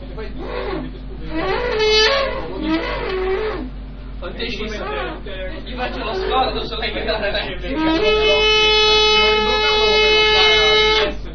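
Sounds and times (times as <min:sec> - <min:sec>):
call horn like a hunting horn blowing: 0:00.4 - 0:03.7, 0:07.7 - 0:11.2
speech: 0:04.4 - 0:08.4.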